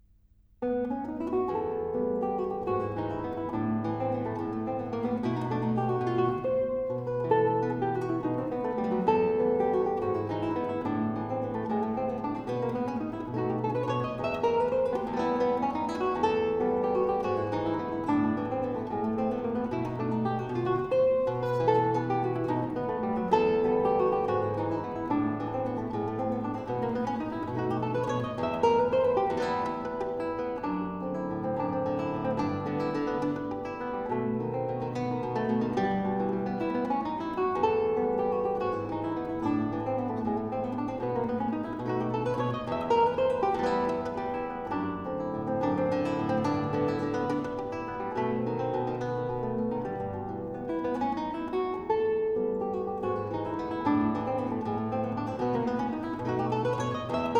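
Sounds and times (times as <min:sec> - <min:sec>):
Venezuelan waltz for guitar in E minor: 0:00.6 - 0:57.3.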